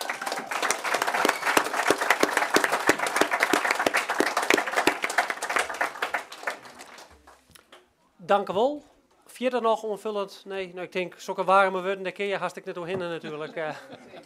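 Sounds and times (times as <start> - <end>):
applause: 0.0 - 7.5
speech: 8.3 - 14.0
laughter: 13.0 - 14.2.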